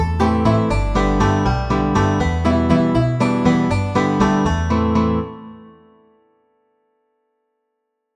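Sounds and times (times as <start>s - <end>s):
Irish banjo playing a traditional jig: 0.0s - 4.8s.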